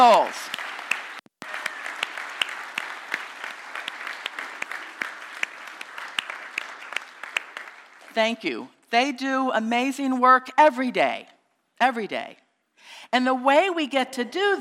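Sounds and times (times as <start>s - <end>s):
speech: 0.0s - 0.5s, 8.2s - 14.6s
audience applause: 0.0s - 8.2s.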